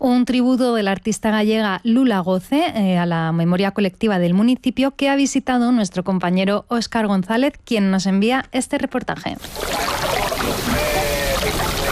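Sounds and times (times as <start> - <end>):
speech: 0.0 - 11.0
sea against the harbour breakwater of Bayona: 9.4 - 11.9.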